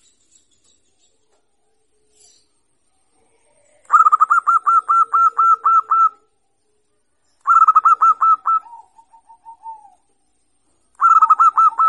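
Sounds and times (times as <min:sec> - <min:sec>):
zebra dove cooing: 0:03.2 - 0:06.3, 0:07.5 - 0:10.1, 0:11.0 - 0:11.8.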